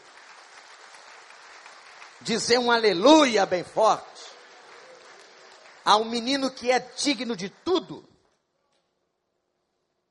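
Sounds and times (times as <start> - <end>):
audience applause: 0.0 - 6.6
speech: 2.2 - 4.1, 5.8 - 8.1.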